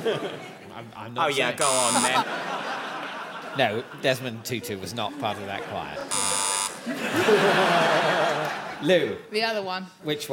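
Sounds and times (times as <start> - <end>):
laughter: 0.0 - 0.9, 1.6 - 9.0
speech: 0.0 - 2.6, 3.6 - 10.3
quiz show buzzer: 1.6 - 2.3, 6.1 - 6.9.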